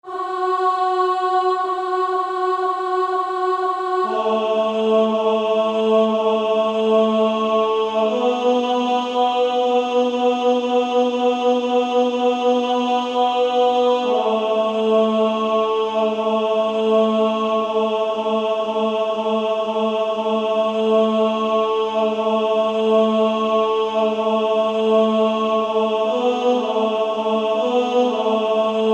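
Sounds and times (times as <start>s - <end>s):
female choir singing: 0.0s - 28.9s.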